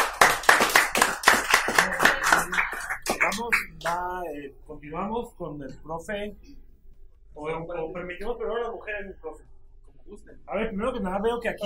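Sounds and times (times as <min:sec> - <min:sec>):
audience applause for the teacher: 0:00.0 - 0:03.9
speech: 0:04.2 - 0:06.6, 0:07.4 - 0:09.5, 0:10.1 - 0:11.6.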